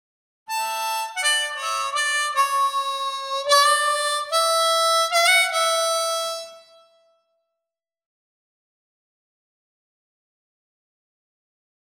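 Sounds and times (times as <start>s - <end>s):
harp: 0.5s - 6.8s.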